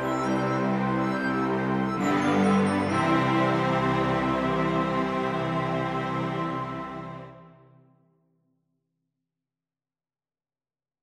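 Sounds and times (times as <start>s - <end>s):
oboe: 0.0s - 7.6s
two cellos: 0.0s - 7.6s
flute: 0.0s - 7.8s.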